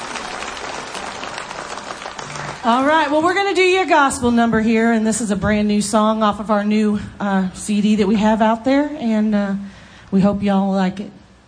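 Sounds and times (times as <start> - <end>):
audience applause: 0.0 - 2.9
speech: 2.6 - 11.2.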